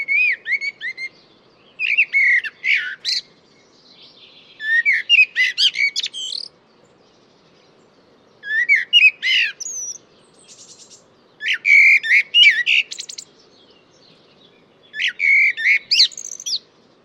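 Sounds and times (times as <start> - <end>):
bird song of quick varied whistled notes with sharp chirps and buzzy elements: 0.0 - 17.0.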